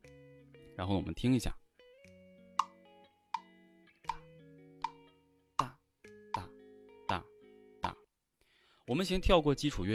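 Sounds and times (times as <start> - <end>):
speech: 0.8 - 1.6, 8.9 - 9.9
mechanical or electronic metronome ticking: 2.6 - 2.8, 3.4 - 7.3.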